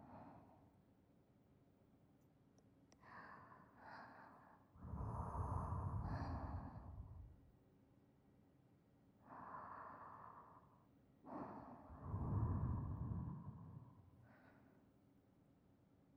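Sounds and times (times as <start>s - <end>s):
sleeping breath beside listener: 3.0s - 7.4s, 9.2s - 14.8s.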